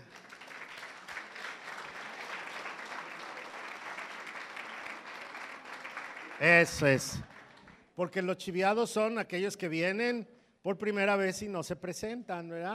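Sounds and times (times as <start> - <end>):
audience applause: 0.0 - 7.8
speech: 6.4 - 7.3, 8.0 - 12.7.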